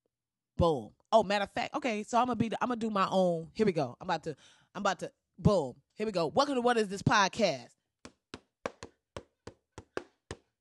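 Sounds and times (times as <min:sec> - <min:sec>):
speech: 0:00.6 - 0:07.8
hands tapping a beat on a table: 0:08.0 - 0:10.6.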